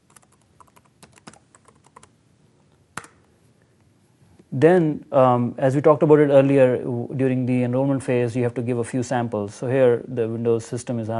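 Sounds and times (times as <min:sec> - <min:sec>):
password typed on a PC keyboard: 0:00.0 - 0:02.1
speech: 0:04.5 - 0:11.1.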